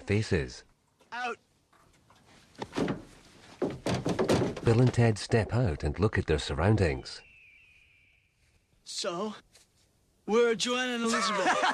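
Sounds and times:
speech: 0.1s - 1.4s, 4.7s - 7.3s, 8.9s - 9.5s, 10.3s - 11.7s
van back door being opened: 2.7s - 5.1s
laughter: 11.1s - 11.7s.

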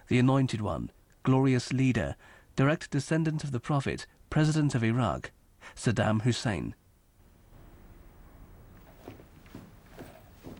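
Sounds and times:
low hiss: 0.0s - 10.5s
speech: 0.1s - 6.8s
footsteps of a man striding through a corridor and up stairs: 7.5s - 10.5s.

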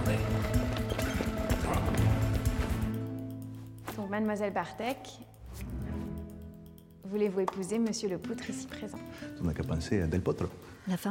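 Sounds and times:
footsteps of a person running down a long corridor: 0.0s - 2.9s
sustained tonal music: 0.0s - 10.8s
speech: 4.1s - 5.7s, 7.1s - 11.0s.

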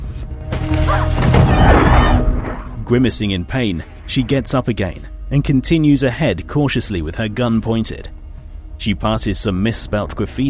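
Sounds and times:
woman bumping into a sofa, crash and thud: 0.5s - 2.9s
speech: 2.9s - 8.2s, 8.8s - 10.4s.

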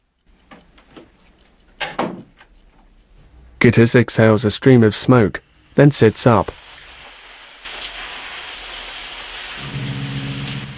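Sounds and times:
bathroom door being shut: 1.8s - 2.3s
speech: 3.6s - 6.6s.

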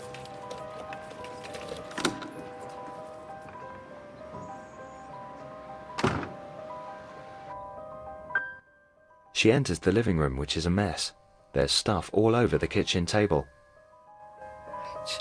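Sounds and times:
front door being unlocked and opened: 0.2s - 3.7s
speech: 9.4s - 13.6s.

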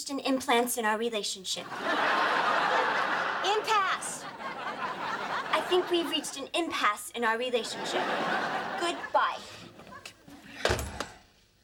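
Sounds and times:
speech: 0.1s - 2.6s, 5.7s - 9.6s
laughter: 1.6s - 6.5s, 7.6s - 10.6s
door being shut: 10.6s - 11.2s.

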